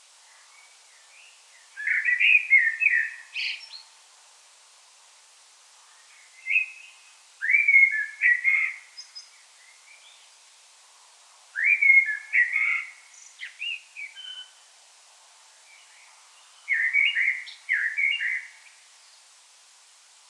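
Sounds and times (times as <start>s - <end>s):
common blackbird singing: 1.2s - 3.8s, 6.4s - 9.3s, 11.6s - 14.6s, 16.6s - 18.7s.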